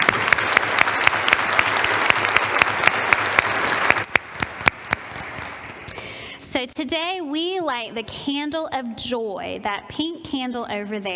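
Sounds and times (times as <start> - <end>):
audience applause: 0.0 - 5.9
speech: 6.8 - 11.1.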